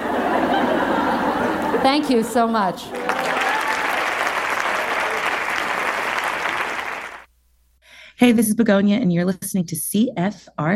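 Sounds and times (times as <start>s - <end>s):
laughter: 0.0s - 2.1s
speech: 1.8s - 3.0s, 8.2s - 10.7s
audience applause after a comedy set: 2.9s - 7.3s.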